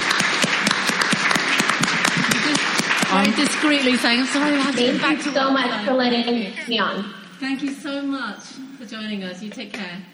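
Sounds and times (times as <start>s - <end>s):
round of applause: 0.0s - 5.1s
speech: 3.2s - 10.1s.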